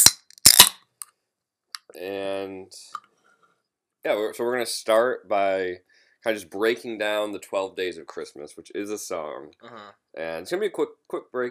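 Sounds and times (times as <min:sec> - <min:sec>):
can of water being opened: 0:00.0 - 0:00.8
speech: 0:01.9 - 0:03.0, 0:04.0 - 0:11.4.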